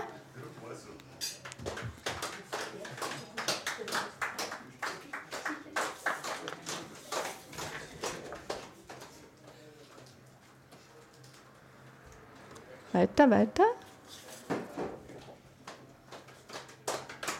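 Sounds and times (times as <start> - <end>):
group clapping and patting rhythm: 1.4 - 10.2, 15.6 - 17.3
speech: 13.0 - 13.8.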